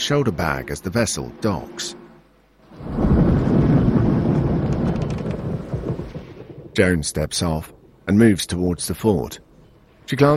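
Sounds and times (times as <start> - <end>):
speech: 0.0 - 2.0, 6.8 - 9.4, 10.1 - 10.3
nighttime thunderstorm with thunder: 2.6 - 8.1.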